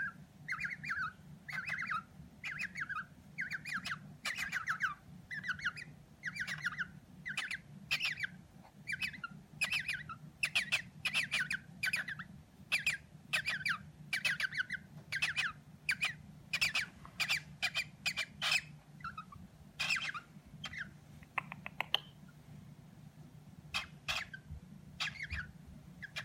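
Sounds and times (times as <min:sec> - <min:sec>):
female cockatiel calling and singing: 0:00.0 - 0:22.2, 0:23.7 - 0:26.2.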